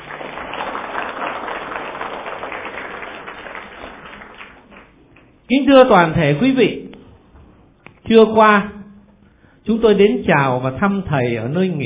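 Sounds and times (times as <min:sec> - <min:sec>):
audience applause: 0:00.0 - 0:05.0
speech: 0:05.5 - 0:06.8, 0:08.1 - 0:08.8, 0:09.6 - 0:11.8.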